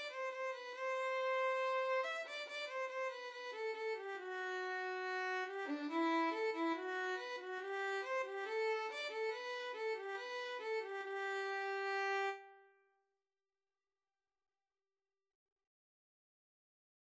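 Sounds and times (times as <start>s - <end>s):
violin and viola duet: 0.0s - 12.4s.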